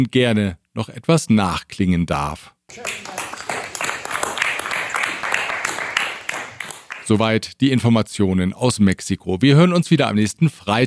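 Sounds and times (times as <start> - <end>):
speech: 0.0 - 3.2, 7.1 - 10.8
small quiet applause from a modest group: 2.7 - 7.2.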